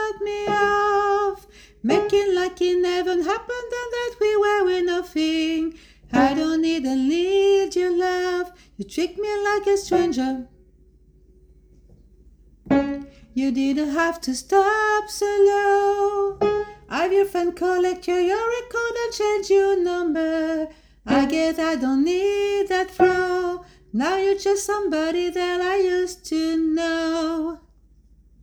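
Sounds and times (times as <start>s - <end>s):
soprano voice: 0.0s - 10.5s, 13.0s - 27.7s.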